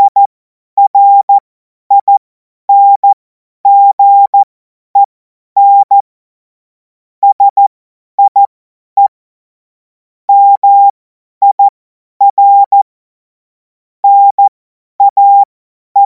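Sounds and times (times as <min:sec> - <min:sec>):
CW Morse code beeps: 0:00.0 - 0:04.4, 0:05.0 - 0:06.0, 0:07.2 - 0:09.1, 0:10.3 - 0:12.8, 0:14.0 - 0:16.0.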